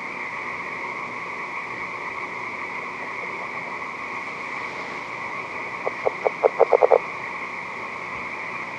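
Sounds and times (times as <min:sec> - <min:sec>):
California red-legged frog making low pulsed notes: 0:00.2 - 0:08.6.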